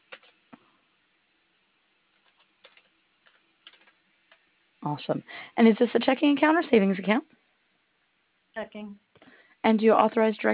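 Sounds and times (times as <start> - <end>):
keystrokes on a computer keyboard during a phone call: 0.0 - 0.4, 2.1 - 4.0
speech: 4.8 - 7.3, 8.7 - 10.5.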